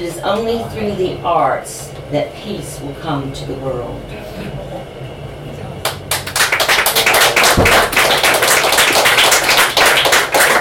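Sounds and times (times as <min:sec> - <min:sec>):
speech: 0:00.0 - 0:05.0
audience clapping: 0:05.8 - 0:10.5.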